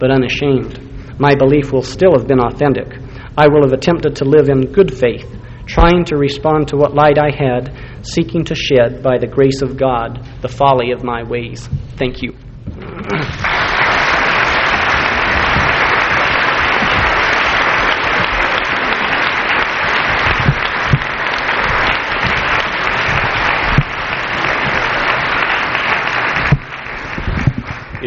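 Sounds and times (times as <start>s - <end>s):
speech: 0.0s - 13.5s
audience applause after a speech: 13.0s - 28.0s.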